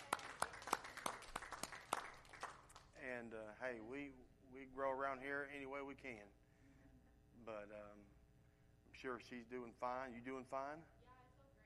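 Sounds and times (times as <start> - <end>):
audience applause: 0.0 - 2.7
speech: 3.2 - 6.4, 7.4 - 8.2, 9.0 - 10.9.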